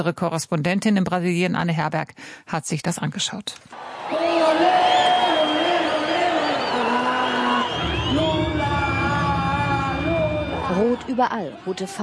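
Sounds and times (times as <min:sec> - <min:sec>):
speech: 0:00.0 - 0:04.8, 0:11.1 - 0:12.0
crowd of supporters cheering in stadium: 0:03.7 - 0:12.0
deep rumble: 0:07.8 - 0:11.1.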